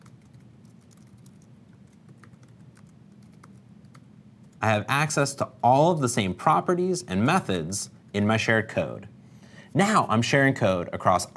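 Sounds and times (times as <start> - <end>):
typing code on a computer keyboard: 0.0 - 4.6
low steady hum: 0.0 - 11.3
speech: 4.6 - 9.1, 9.7 - 11.3.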